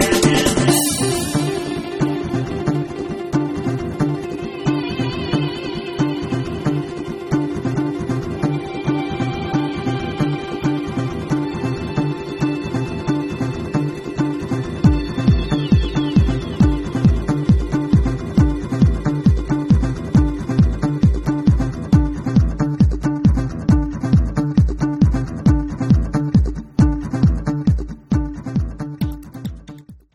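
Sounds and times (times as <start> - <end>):
string instrument: 0.0 - 28.6.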